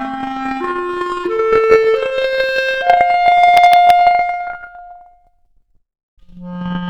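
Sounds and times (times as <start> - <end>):
clarinet arpeggio: 0.5 - 5.1.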